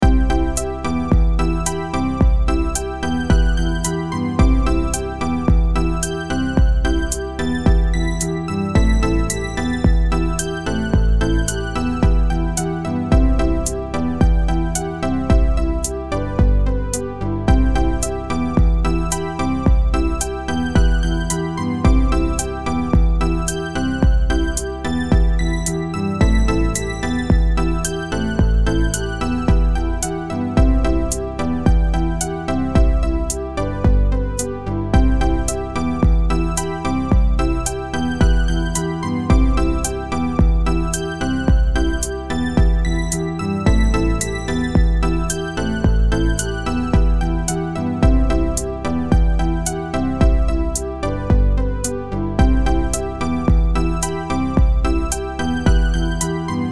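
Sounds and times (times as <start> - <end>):
sequencer music: 0.0 - 56.6.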